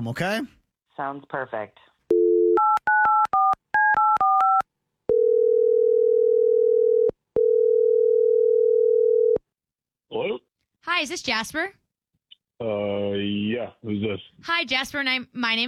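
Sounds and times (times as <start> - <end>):
speech: 0.0 - 1.9, 10.1 - 11.8, 12.6 - 15.6
telephone dial tone: 2.1 - 9.4.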